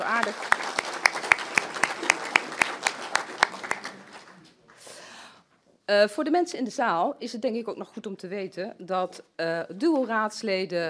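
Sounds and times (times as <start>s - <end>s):
speech: 0.0s - 0.6s, 5.9s - 10.8s
council members applauding indoors: 0.0s - 4.9s.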